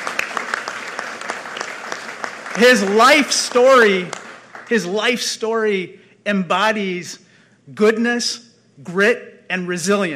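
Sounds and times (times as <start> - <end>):
audience applause: 0.0 - 4.9
speech: 2.6 - 10.1.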